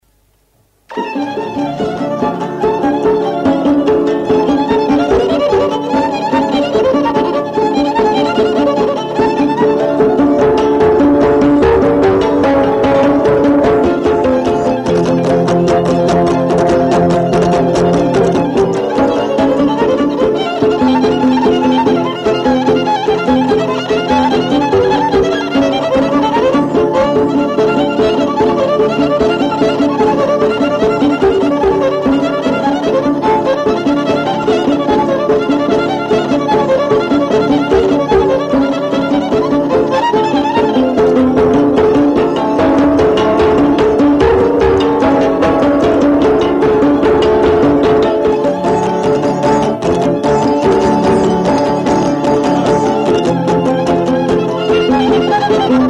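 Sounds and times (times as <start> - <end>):
taraf band music: 0.8 - 55.8.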